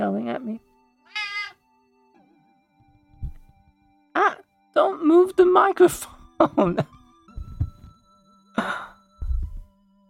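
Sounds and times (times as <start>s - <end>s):
speech: 0.0s - 1.2s, 4.2s - 7.0s
cat meowing: 1.1s - 1.6s
dull thump: 7.3s - 8.0s, 9.2s - 9.7s.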